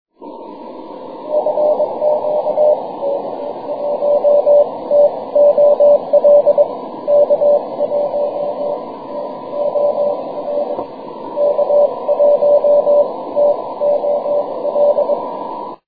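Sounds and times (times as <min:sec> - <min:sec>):
6m CW morse code signal: 0:01.2 - 0:15.8.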